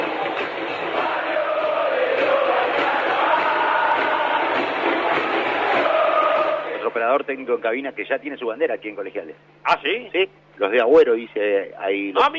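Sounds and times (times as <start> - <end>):
football fans chanting in stadium: 0.0 - 7.0
speech: 7.3 - 12.3.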